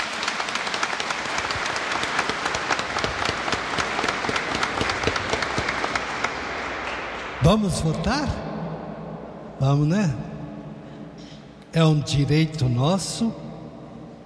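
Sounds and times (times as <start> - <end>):
audience applause: 0.0 - 7.5
speech: 7.5 - 8.5, 9.6 - 10.3, 11.7 - 13.4.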